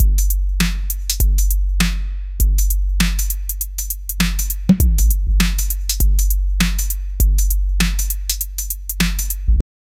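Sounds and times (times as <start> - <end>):
tense beat: 0.0 - 9.6.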